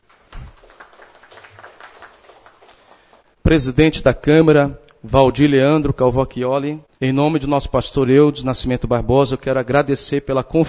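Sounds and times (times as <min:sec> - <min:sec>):
audience applause: 0:00.0 - 0:03.4
speech: 0:03.5 - 0:10.6.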